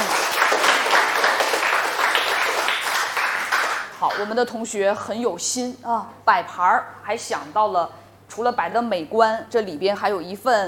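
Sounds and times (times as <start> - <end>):
audience applause: 0.0 - 4.0
speech: 4.2 - 10.6.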